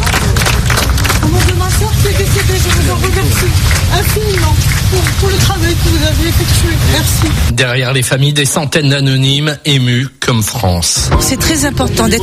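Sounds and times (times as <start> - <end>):
families applauding at a memorial: 0.0 - 7.4
speech: 2.9 - 12.2.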